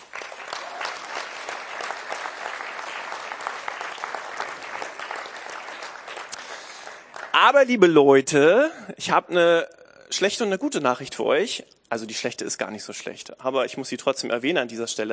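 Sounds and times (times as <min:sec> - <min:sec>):
audience applause: 0:00.0 - 0:07.5
speech: 0:07.5 - 0:15.1.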